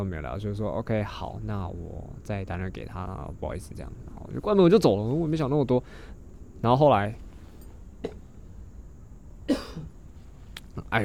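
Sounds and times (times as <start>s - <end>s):
speech: 0.0s - 7.2s, 10.8s - 11.0s
person coughing: 8.0s - 8.3s, 9.5s - 10.0s.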